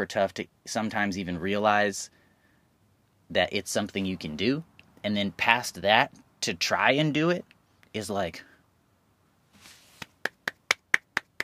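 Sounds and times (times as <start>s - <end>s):
speech: 0.0s - 2.2s, 3.3s - 8.5s
soft rustle: 9.4s - 10.2s
person clapping their hands: 10.0s - 11.4s.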